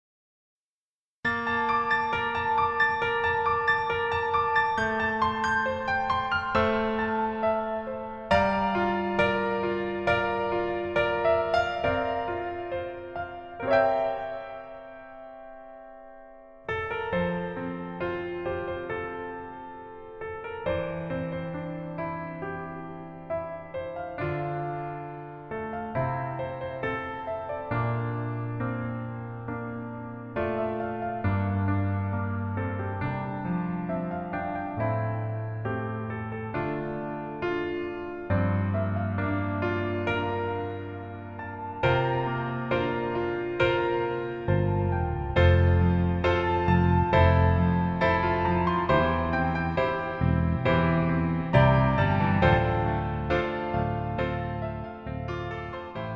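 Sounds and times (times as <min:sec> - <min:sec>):
piano version melody backing track: 0:01.2 - 0:56.1.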